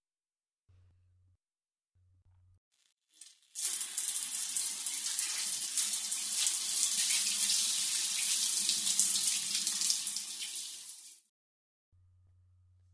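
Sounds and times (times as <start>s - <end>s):
shower water running: 3.1s - 11.3s.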